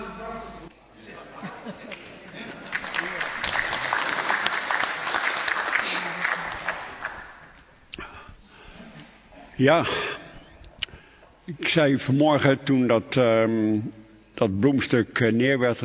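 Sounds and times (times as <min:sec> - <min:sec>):
laughter: 0:01.1 - 0:04.2
audience applause: 0:02.5 - 0:07.6
speech: 0:09.6 - 0:10.2, 0:11.5 - 0:15.8.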